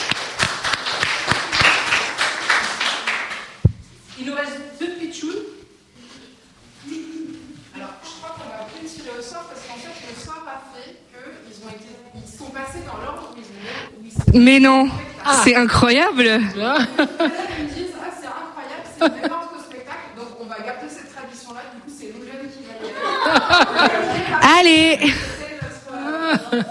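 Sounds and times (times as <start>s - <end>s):
applause: 0.0s - 3.6s
speech: 14.3s - 17.7s, 24.4s - 25.2s
laughter: 16.6s - 17.9s, 18.9s - 19.4s, 22.8s - 26.7s.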